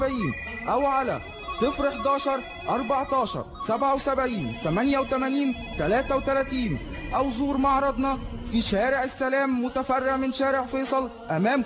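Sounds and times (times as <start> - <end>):
telephone ringing with a warbling electronic tone: 0.0 - 8.3
speech: 0.0 - 11.6.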